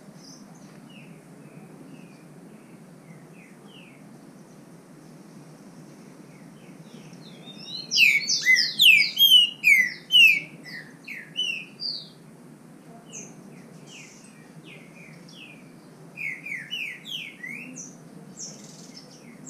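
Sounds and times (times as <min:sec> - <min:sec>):
green-winged saltator singing in song contest in the bush: 0:07.5 - 0:12.0.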